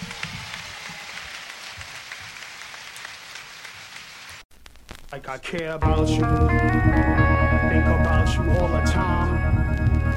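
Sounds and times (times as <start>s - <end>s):
audience applause for the band: 0.0s - 4.4s
speech: 5.1s - 10.0s.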